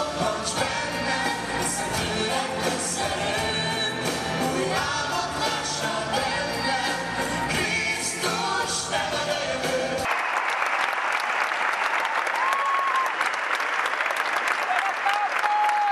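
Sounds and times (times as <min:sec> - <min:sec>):
song: 0:00.0 - 0:10.1
arena crowd applauding: 0:10.0 - 0:15.9.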